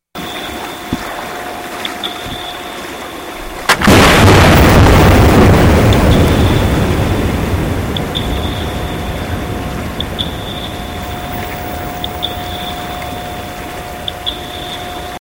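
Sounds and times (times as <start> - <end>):
seismic blast: 3.6 - 11.9.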